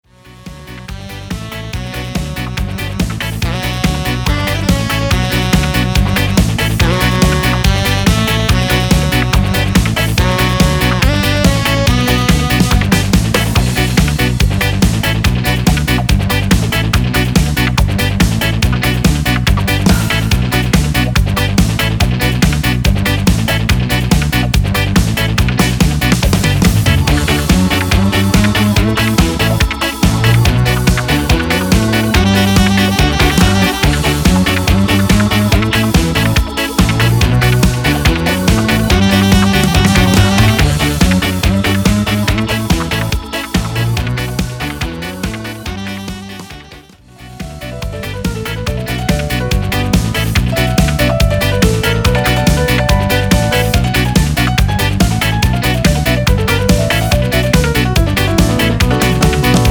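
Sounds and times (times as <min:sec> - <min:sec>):
Yamaha MIDI music: 0:00.1 - 0:59.6.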